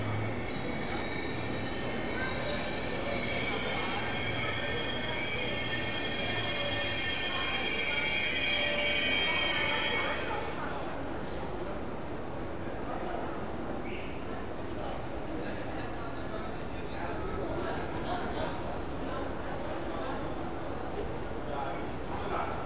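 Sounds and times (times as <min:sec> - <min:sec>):
trains at a through station in Germany: 0:00.0 - 0:22.6.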